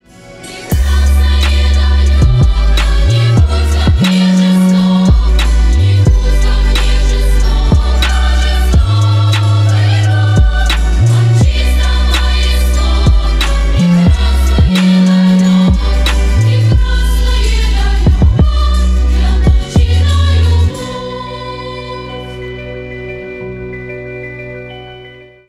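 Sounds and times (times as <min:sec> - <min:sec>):
trap remix: 0:00.7 - 0:20.8.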